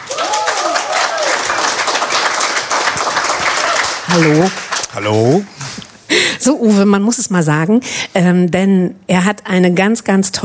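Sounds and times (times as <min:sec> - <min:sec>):
cheers and whoops: 0:00.0 - 0:01.8, 0:03.4 - 0:04.0
audience applause: 0:00.0 - 0:05.4
speech: 0:04.1 - 0:05.7, 0:06.4 - 0:10.4.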